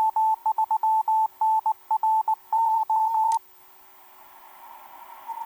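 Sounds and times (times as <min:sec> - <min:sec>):
17m band CW morse code tones: 0:00.0 - 0:03.4.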